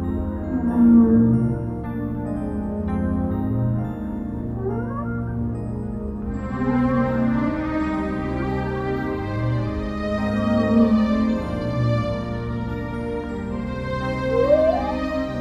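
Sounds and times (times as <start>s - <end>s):
whale song: 0.0s - 13.0s, 13.9s - 15.3s.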